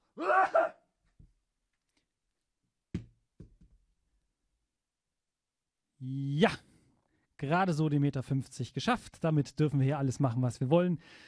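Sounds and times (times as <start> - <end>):
person sneezing into elbow: 0.2 - 0.8
speech: 6.0 - 6.6, 7.4 - 11.2.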